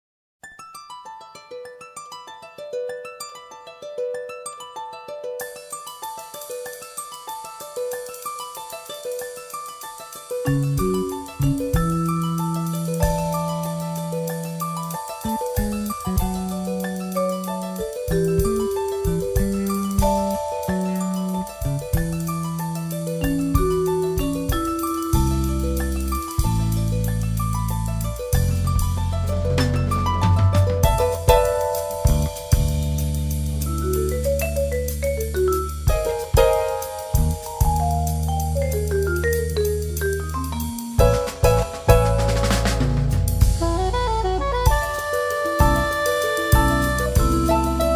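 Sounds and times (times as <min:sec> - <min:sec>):
harp: 0:00.4 - 0:47.9.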